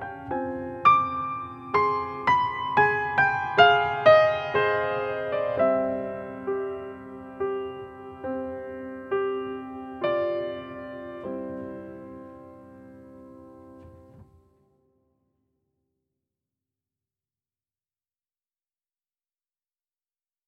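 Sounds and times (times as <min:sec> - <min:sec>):
little piano: 0:00.0 - 0:15.4.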